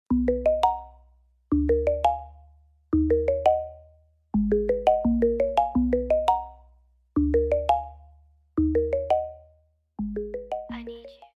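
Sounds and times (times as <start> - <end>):
aesthetic ringtone melody: 0.1 - 11.3.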